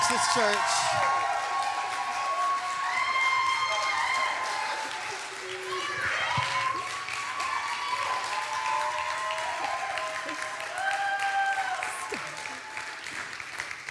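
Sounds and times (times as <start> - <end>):
cheers and whoops: 0.0 - 13.4
audience applause: 0.0 - 13.8.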